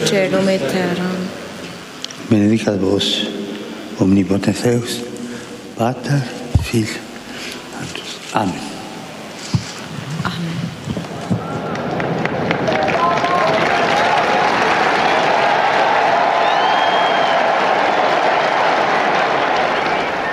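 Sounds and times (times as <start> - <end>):
speech: 0.1 - 1.4, 2.3 - 3.4, 4.0 - 5.1, 5.8 - 7.1, 8.4 - 8.7
large crowd applauding and cheering in Saint Peter's Square: 10.8 - 20.3.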